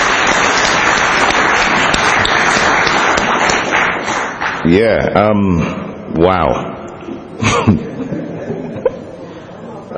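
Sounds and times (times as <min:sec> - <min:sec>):
audience applause: 0:00.0 - 0:04.8
speech: 0:04.7 - 0:06.7, 0:07.4 - 0:08.2
laughter: 0:07.3 - 0:09.9.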